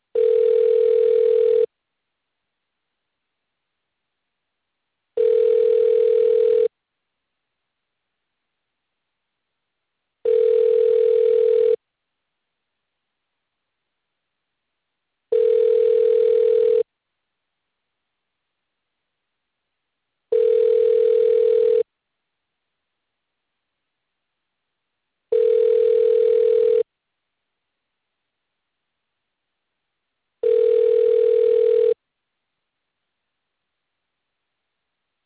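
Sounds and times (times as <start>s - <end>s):
telephone ringing tone while calling a roadside service: 0.2s - 1.7s, 5.2s - 6.7s, 10.2s - 11.8s, 15.3s - 16.9s, 20.3s - 21.9s, 25.3s - 26.9s, 30.4s - 32.0s.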